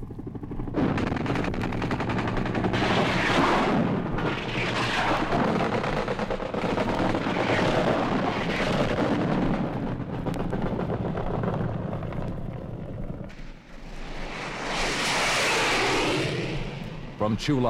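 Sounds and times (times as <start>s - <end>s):
Huey gunship rocket fire: 0.0s - 17.6s
Huey gunship machine gun fire raking the landing zone: 0.8s - 9.5s.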